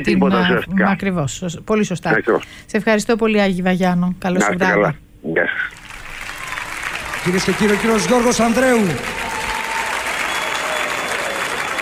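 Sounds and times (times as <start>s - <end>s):
live concert audience applause: 0.0s - 0.6s, 5.6s - 11.7s
laughter: 0.0s - 2.5s, 4.2s - 11.7s
speech: 0.0s - 5.8s, 7.2s - 9.3s.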